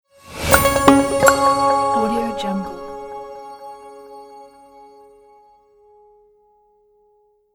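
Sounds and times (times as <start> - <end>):
short logo sound: 0.4 - 4.6.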